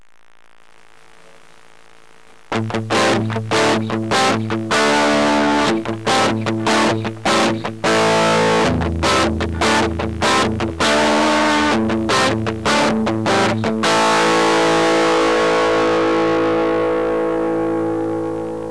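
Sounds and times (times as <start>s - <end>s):
MXR Distortion+ pedal effect: 0.0s - 18.6s.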